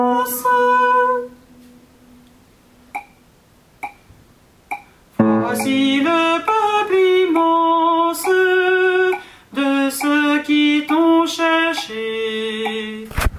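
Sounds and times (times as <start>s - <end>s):
bass voice singing a psalm: 0.0s - 1.8s, 5.2s - 13.1s.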